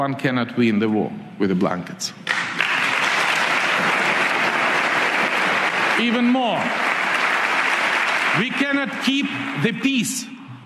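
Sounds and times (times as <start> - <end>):
speech: 0.0 - 2.6, 6.0 - 6.9, 8.4 - 10.4
large audience applause in played recording: 2.3 - 10.0.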